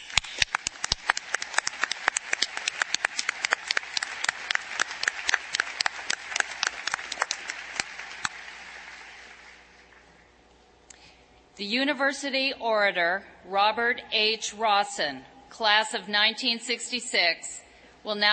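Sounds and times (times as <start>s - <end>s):
commencement audience applause: 0.0s - 9.9s
speech: 11.6s - 18.3s.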